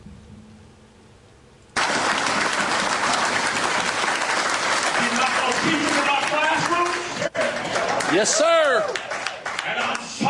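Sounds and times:
large audience applause: 0:01.8 - 0:10.2
people shouting and cheering: 0:05.0 - 0:09.2
speech: 0:08.1 - 0:09.1.

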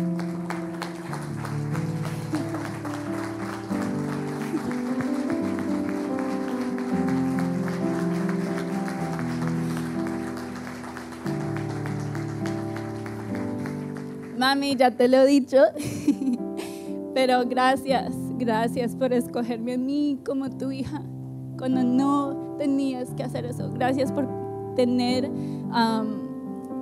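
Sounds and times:
audience round of applause: 0:00.0 - 0:14.6
speech: 0:14.4 - 0:16.1, 0:17.2 - 0:26.2.

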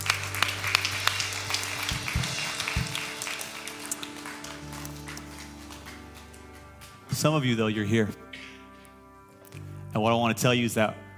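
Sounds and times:
audience applause: 0:00.0 - 0:07.1
speech: 0:07.2 - 0:08.2, 0:10.0 - 0:11.0.

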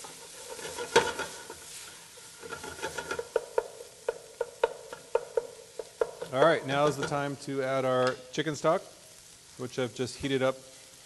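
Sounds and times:
utensil scraping and breaking up sausage in a pan: 0:00.0 - 0:07.4
sausage sizzling in a hot pan: 0:00.0 - 0:11.0
speech: 0:06.3 - 0:09.0, 0:09.6 - 0:10.7.

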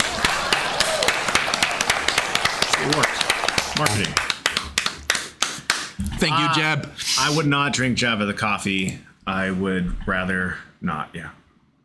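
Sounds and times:
audience applause: 0:00.0 - 0:05.9
speech: 0:03.8 - 0:04.3, 0:06.2 - 0:11.4.

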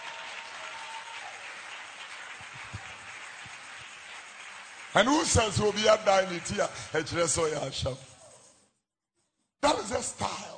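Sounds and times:
audience clapping hands: 0:00.0 - 0:07.9
speech: 0:05.0 - 0:08.1.

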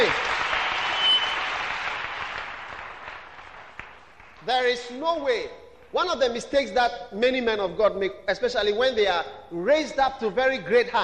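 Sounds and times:
crowd clapping: 0:00.0 - 0:04.9
speech: 0:04.5 - 0:11.0.

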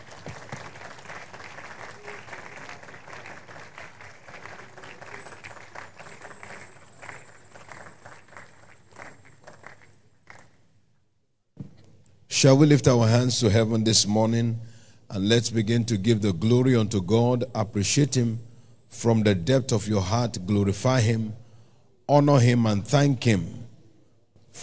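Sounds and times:
church congregation clapping for a testimony: 0:00.0 - 0:10.7
speech: 0:12.4 - 0:21.4, 0:22.1 - 0:23.6.

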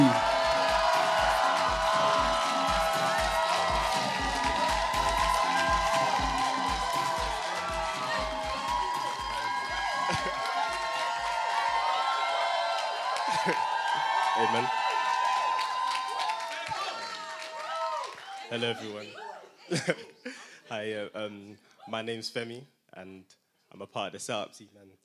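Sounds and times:
church audience clapping: 0:00.0 - 0:19.0
laughter: 0:09.8 - 0:10.6, 0:13.2 - 0:13.8, 0:19.6 - 0:20.6
speech: 0:18.6 - 0:20.1, 0:20.8 - 0:25.0.

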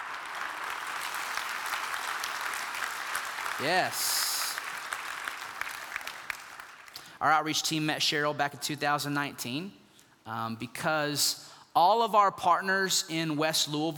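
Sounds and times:
audience applause: 0:00.0 - 0:07.0
speech: 0:03.6 - 0:04.3, 0:07.2 - 0:13.9.

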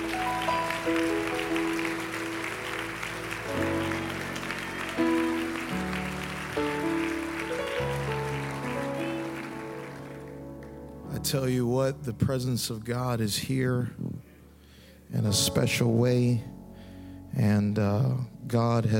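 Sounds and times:
audience clapping hands: 0:00.0 - 0:11.1
organ or keyboard chords: 0:00.0 - 0:18.9
speech: 0:11.3 - 0:14.1, 0:15.3 - 0:16.5, 0:17.4 - 0:18.9.

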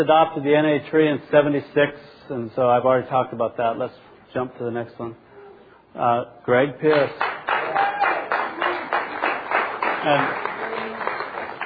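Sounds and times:
speech: 0:00.0 - 0:05.2, 0:06.0 - 0:07.3, 0:10.0 - 0:10.5
audience applause: 0:06.9 - 0:11.6.

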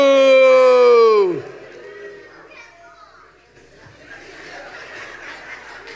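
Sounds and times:
audience booing: 0:00.0 - 0:02.3
laughter: 0:00.7 - 0:05.9.

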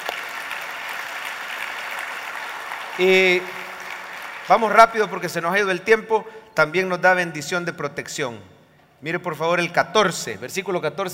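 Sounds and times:
audience applause: 0:00.0 - 0:04.9
speech: 0:03.0 - 0:03.6, 0:04.5 - 0:11.1.

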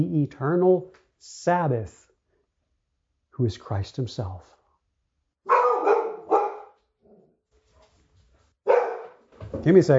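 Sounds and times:
speech: 0:00.0 - 0:02.1, 0:03.4 - 0:04.6, 0:09.6 - 0:09.9
pet dog barking at something outside: 0:05.5 - 0:07.3, 0:08.6 - 0:09.3.

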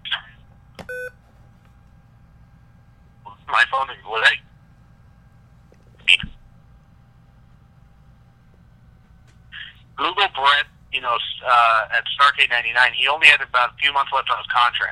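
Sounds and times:
loud beep on the call line: 0:00.9 - 0:01.2
speech: 0:03.5 - 0:04.5, 0:10.0 - 0:14.8.

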